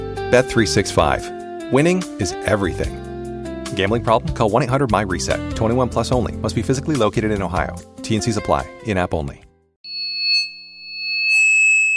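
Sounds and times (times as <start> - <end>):
speech: 0.3 - 3.1, 3.7 - 9.5
simulated tinnitus high-pitched electronic ringing: 9.9 - 11.9.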